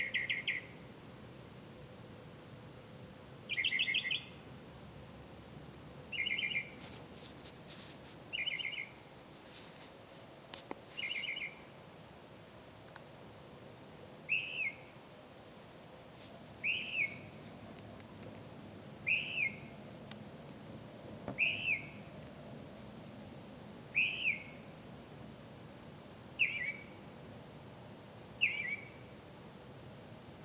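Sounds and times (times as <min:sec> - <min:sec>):
bird: 0:00.0 - 0:00.8, 0:03.5 - 0:04.4, 0:06.1 - 0:09.0, 0:10.9 - 0:11.7, 0:14.3 - 0:14.9, 0:16.6 - 0:17.5, 0:19.0 - 0:19.7, 0:21.3 - 0:22.1, 0:23.9 - 0:24.7, 0:26.4 - 0:27.0, 0:28.4 - 0:29.1.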